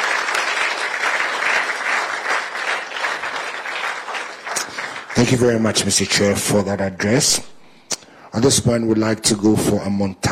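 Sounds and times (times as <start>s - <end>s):
audience clapping: 0.0s - 6.7s
speech: 5.2s - 7.5s, 8.3s - 10.2s.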